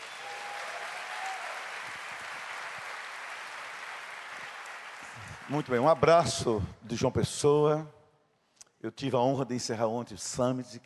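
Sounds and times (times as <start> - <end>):
audience applause: 0.0 - 6.3
speech: 5.5 - 8.0, 8.8 - 10.8.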